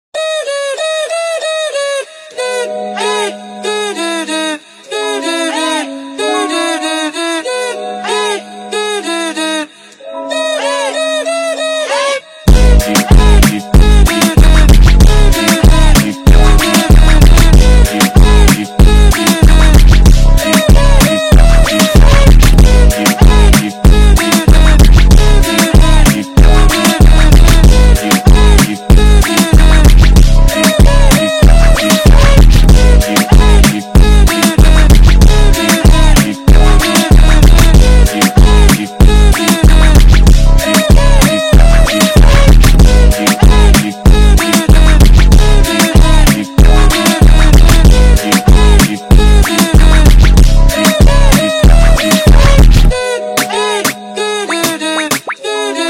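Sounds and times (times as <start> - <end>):
phonk music: 0.2 - 55.8.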